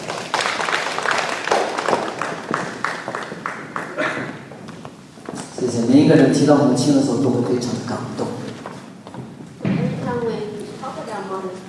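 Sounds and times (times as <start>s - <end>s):
crowd applause: 0.0s - 4.6s
speech: 5.7s - 8.2s.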